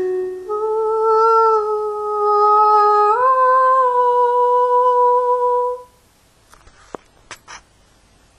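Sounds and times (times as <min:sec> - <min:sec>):
soprano singing: 0:00.0 - 0:06.0.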